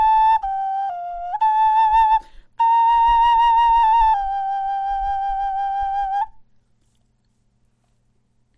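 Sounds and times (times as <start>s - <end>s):
bone flute melody: 0.0s - 6.4s.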